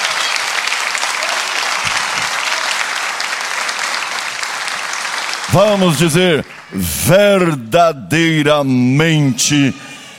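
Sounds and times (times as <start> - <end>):
audience applause: 0.0 - 7.6
speech: 5.5 - 9.9.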